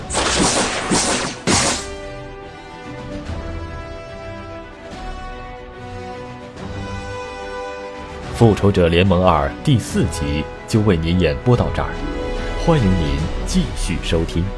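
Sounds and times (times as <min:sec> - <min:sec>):
crashing battle sound effects: 0:00.0 - 0:02.0
explosions: 0:00.0 - 0:02.0
speech: 0:08.4 - 0:14.5.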